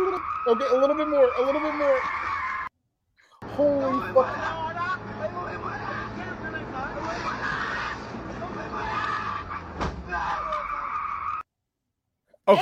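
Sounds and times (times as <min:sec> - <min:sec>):
car tires screeching: 0:00.0 - 0:02.7, 0:04.0 - 0:11.4
speech: 0:00.5 - 0:02.2, 0:03.6 - 0:04.6, 0:12.5 - 0:12.6
thud: 0:09.7 - 0:10.2.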